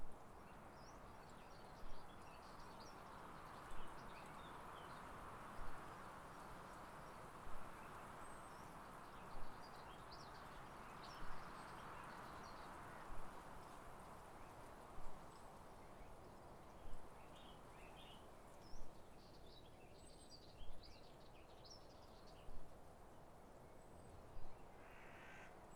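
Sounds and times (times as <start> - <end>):
wind in the countryside: 0.0 - 25.7.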